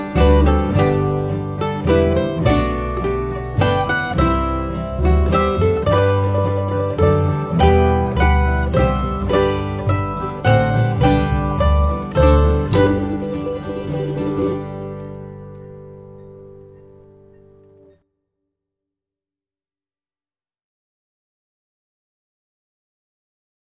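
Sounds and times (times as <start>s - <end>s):
bass: 0.0s - 18.0s.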